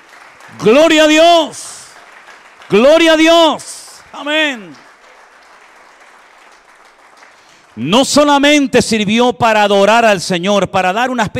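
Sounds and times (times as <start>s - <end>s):
church congregation applause praising God: 0.0s - 9.0s
speech: 0.5s - 1.7s, 2.7s - 4.8s, 7.8s - 11.3s.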